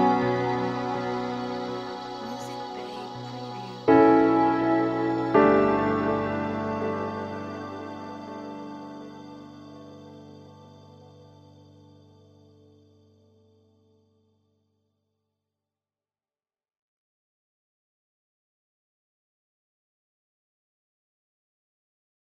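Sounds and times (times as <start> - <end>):
ambient piano space soundscape: 0.0 - 14.4.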